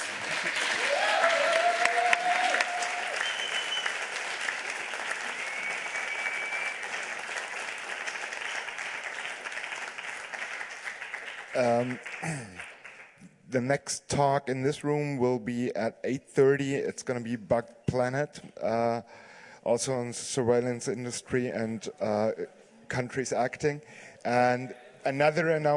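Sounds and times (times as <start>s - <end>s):
audience applause: 0.0s - 13.2s
speech: 11.6s - 12.6s, 13.5s - 25.7s.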